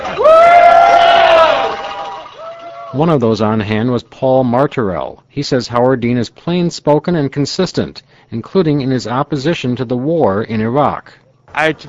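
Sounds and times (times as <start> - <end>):
supporters cheering for Howard Dean outside a TV station: 0.0 - 3.0
speech: 2.9 - 11.8.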